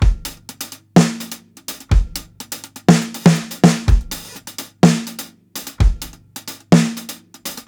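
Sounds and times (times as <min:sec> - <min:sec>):
half time drum loop with broken hi-hats: 0:00.0 - 0:07.6.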